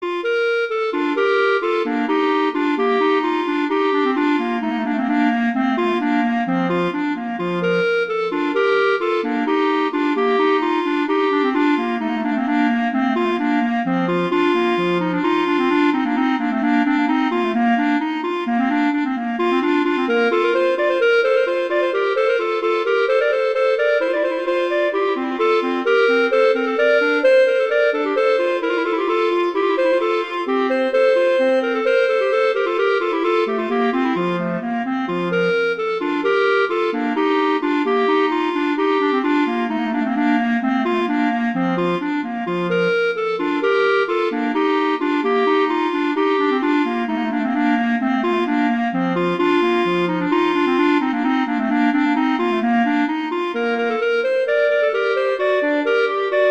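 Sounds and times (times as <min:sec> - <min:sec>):
allegro classical piece: 0:00.0 - 0:56.5.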